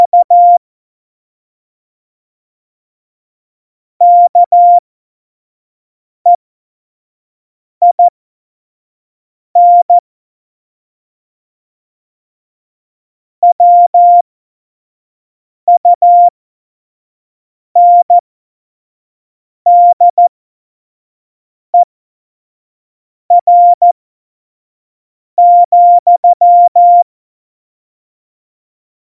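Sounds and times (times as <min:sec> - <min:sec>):
CW Morse code beeps for a Morse course: 0:00.0 - 0:00.6, 0:04.0 - 0:04.8, 0:07.8 - 0:08.1, 0:09.6 - 0:10.0, 0:13.4 - 0:14.2, 0:15.7 - 0:16.3, 0:17.8 - 0:18.2, 0:19.7 - 0:20.2, 0:23.3 - 0:24.0, 0:25.4 - 0:27.0.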